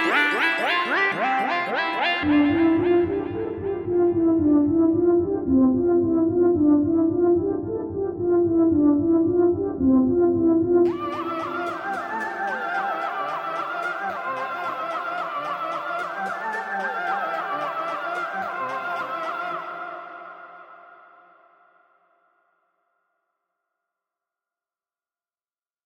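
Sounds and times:
poly synths: 0.0 - 19.1.

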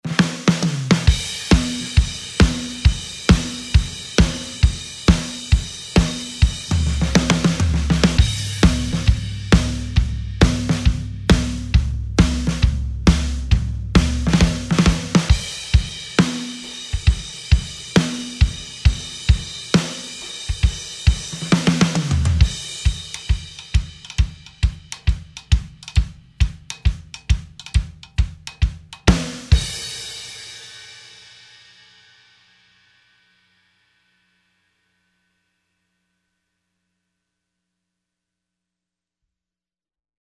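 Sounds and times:
135 bpm four on the floor beat: 0.2 - 30.0.

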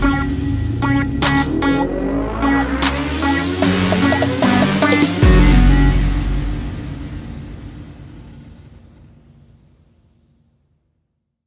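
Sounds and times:
trap music: 0.0 - 7.7.

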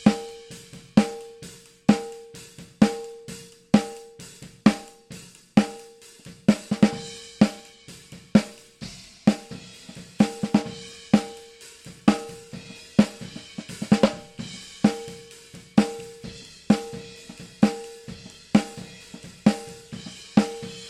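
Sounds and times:
ungated snare drum: 0.0 - 20.8.

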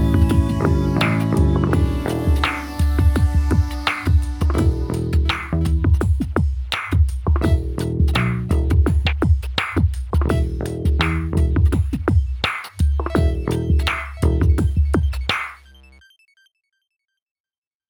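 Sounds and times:
direct bass: 0.0 - 16.0.

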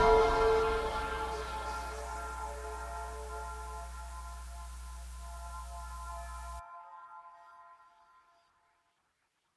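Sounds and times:
granular rhythms: 0.0 - 6.6.

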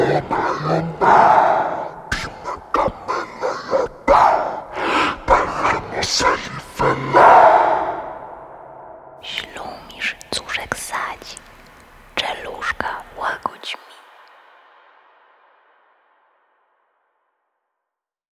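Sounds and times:
person whispering: 0.0 - 7.2, 9.2 - 14.3.

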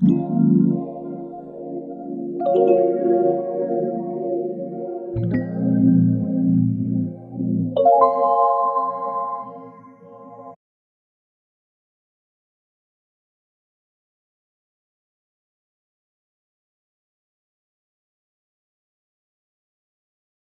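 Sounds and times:
Rhodes electric piano: 0.0 - 10.6.

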